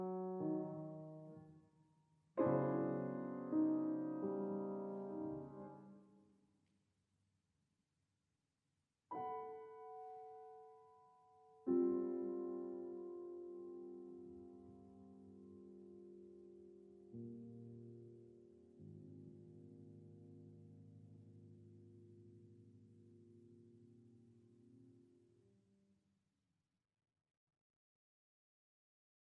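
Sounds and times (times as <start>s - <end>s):
little piano piece: 0.0s - 1.8s, 2.4s - 6.1s, 9.1s - 25.4s.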